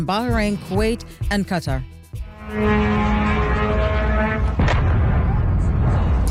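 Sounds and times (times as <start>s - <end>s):
speech: 0.0s - 3.3s
drone engine buzzing: 2.2s - 5.8s
drone explosion hitting a warehouse: 2.6s - 6.3s
lingering rumble with crackles: 2.6s - 6.3s.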